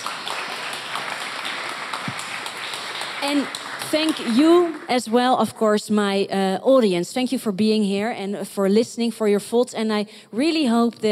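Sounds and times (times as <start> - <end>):
audience applause: 0.0 - 5.0
speech: 3.2 - 11.1.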